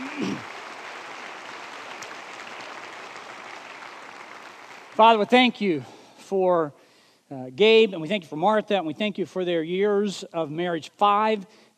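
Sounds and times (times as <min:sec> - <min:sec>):
audience applause: 0:00.0 - 0:05.3
speech: 0:05.0 - 0:11.7.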